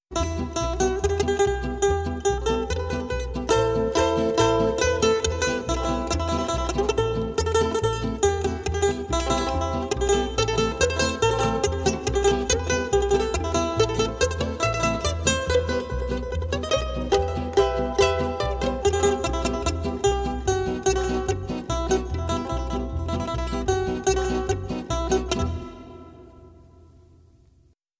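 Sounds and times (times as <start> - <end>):
Russian folk dance music: 0.1 - 26.9.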